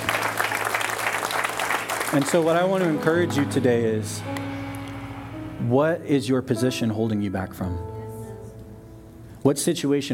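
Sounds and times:
crowd clapping: 0:00.0 - 0:03.5
speech: 0:02.1 - 0:04.5, 0:05.6 - 0:07.9, 0:09.4 - 0:10.1.

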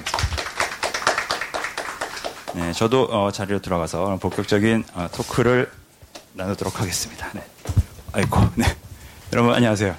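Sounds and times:
small audience applause: 0:00.0 - 0:03.0
speech: 0:02.6 - 0:09.9.

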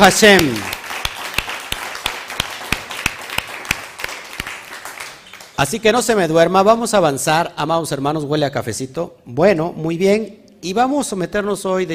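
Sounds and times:
speech: 0:00.0 - 0:00.7, 0:05.6 - 0:11.9
audience applause: 0:00.0 - 0:05.6.

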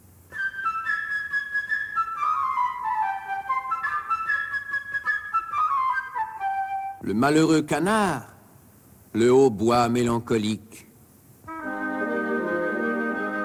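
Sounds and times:
light twittering flute playing bird theme: 0:00.3 - 0:07.0, 0:11.5 - 0:13.4
speech: 0:07.1 - 0:08.3, 0:09.2 - 0:10.8.

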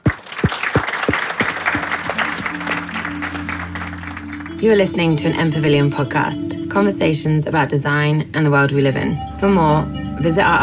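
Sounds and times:
audience applause: 0:00.0 - 0:04.8
speech: 0:04.6 - 0:10.6.

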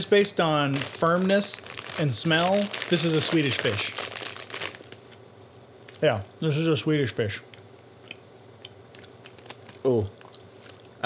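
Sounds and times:
speech: 0:00.0 - 0:04.0, 0:06.0 - 0:07.5, 0:09.8 - 0:10.2
candy packaging crinkling being opened: 0:00.0 - 0:05.2, 0:05.8 - 0:06.1, 0:08.9 - 0:10.8.

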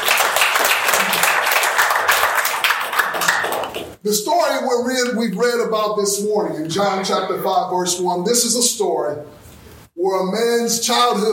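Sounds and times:
audience clapping hands: 0:00.0 - 0:04.0
speech: 0:04.0 - 0:09.4, 0:10.0 - 0:11.3.

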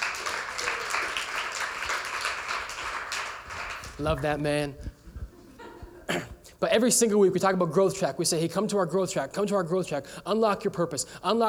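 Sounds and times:
crowd applauding: 0:00.0 - 0:04.7
laughter: 0:03.8 - 0:06.4
speech: 0:04.0 - 0:04.8, 0:06.6 - 0:11.4.

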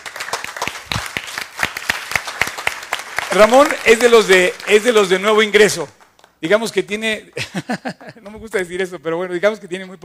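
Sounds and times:
audience applause: 0:00.0 - 0:06.3
speech: 0:03.3 - 0:10.0
laughter: 0:07.4 - 0:08.4.

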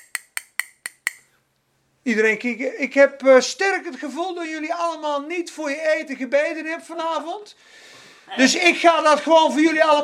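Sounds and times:
spoon tapping on a glass: 0:00.0 - 0:01.3
speech: 0:02.0 - 0:10.0.

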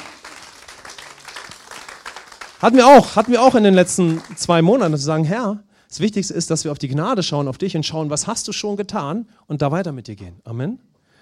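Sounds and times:
audience applause: 0:00.0 - 0:05.0
speech: 0:02.6 - 0:10.9.

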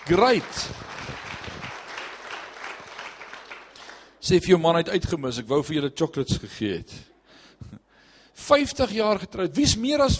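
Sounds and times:
audience applause: 0:00.0 - 0:04.1
speech: 0:00.1 - 0:00.8, 0:04.3 - 0:07.8, 0:08.4 - 0:10.1.

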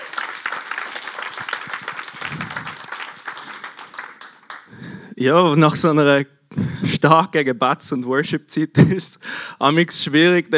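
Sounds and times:
audience applause: 0:00.0 - 0:04.7
speech: 0:05.2 - 0:10.5.

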